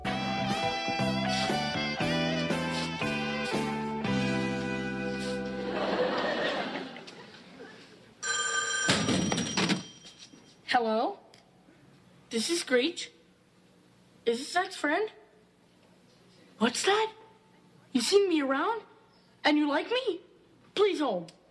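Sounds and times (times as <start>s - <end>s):
rhythmic musical chords: 0.0s - 5.8s
laughter: 5.1s - 8.0s
payphone ringing: 8.2s - 10.2s
speech: 12.4s - 13.2s, 14.3s - 15.2s, 16.6s - 17.2s, 17.9s - 20.2s, 20.8s - 21.4s.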